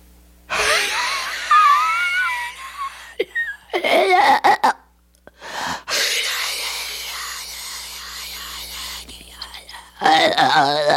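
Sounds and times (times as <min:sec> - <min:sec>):
laughter: 0:00.5 - 0:04.5
voice imitating unearthly rasping demonic breathing: 0:05.4 - 0:10.8.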